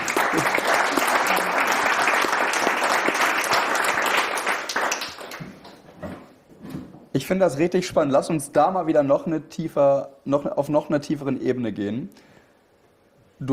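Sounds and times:
applause: 0.0 - 5.8
speech: 7.2 - 12.3.

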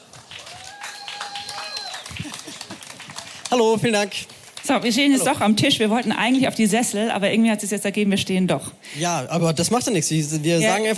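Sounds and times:
audience clapping: 0.0 - 6.4
person cheering: 0.4 - 2.2
speech: 3.5 - 10.9.

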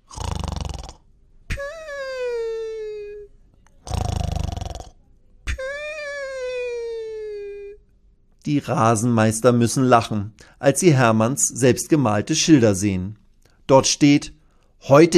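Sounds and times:
dinosaur snoring softly: 0.0 - 1.0, 3.8 - 5.0
speech: 8.5 - 15.1.

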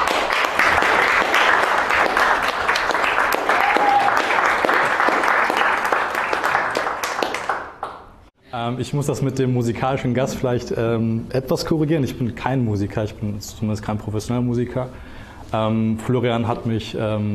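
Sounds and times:
audience applause in a theater: 0.0 - 8.1
speech: 8.7 - 17.3.

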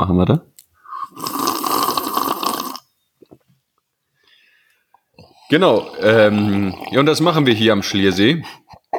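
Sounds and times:
speech: 0.0 - 0.5, 5.5 - 8.9
person slurping tea: 0.8 - 2.9, 5.2 - 7.1.

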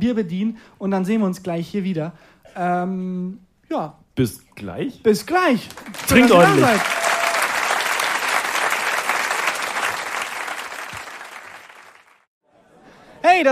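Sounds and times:
speech: 0.0 - 7.0
crowd applauding: 5.7 - 12.3
laughter: 5.9 - 7.2.

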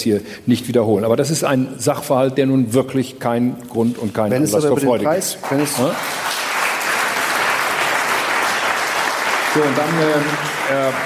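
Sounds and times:
speech: 0.0 - 6.4, 9.6 - 11.0
applause: 5.2 - 11.0.

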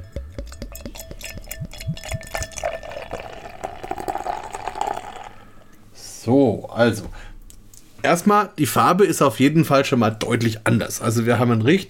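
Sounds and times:
beer pouring into a glass: 0.4 - 5.6
speech: 6.3 - 7.2, 8.0 - 11.8.

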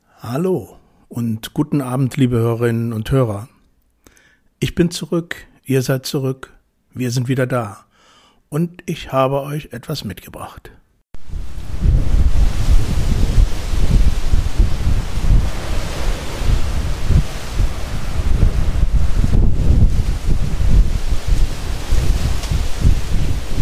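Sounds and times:
speech: 0.2 - 3.5, 4.6 - 7.9, 8.5 - 11.5
strong steady cool north wind from Portugal: 11.2 - 23.6.

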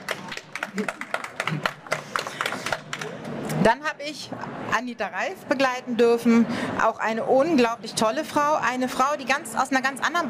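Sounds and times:
crowd applause: 0.0 - 3.3
speech: 0.7 - 1.7, 3.6 - 10.2.

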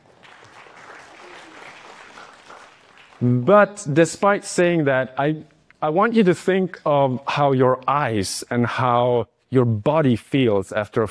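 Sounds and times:
small applause: 0.0 - 3.5
speech: 3.2 - 11.0.

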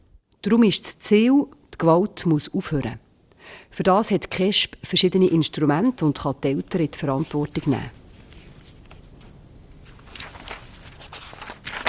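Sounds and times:
speech: 0.4 - 8.0
leafing back through a stack of files: 8.2 - 11.8.

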